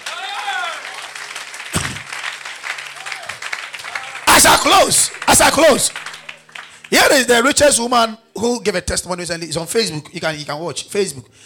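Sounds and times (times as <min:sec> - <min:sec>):
audience clapping: 0:00.0 - 0:07.5
speech: 0:04.4 - 0:06.1, 0:06.9 - 0:11.4.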